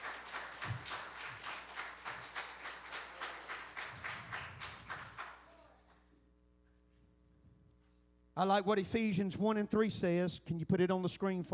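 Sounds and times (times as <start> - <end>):
audience clapping hands in praise: 0.0 - 6.0
speech: 8.4 - 11.5.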